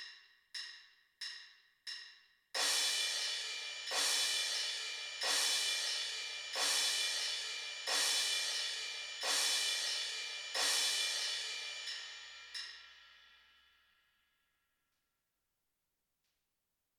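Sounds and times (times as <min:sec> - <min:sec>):
crash cymbals: 0:02.6 - 0:14.2.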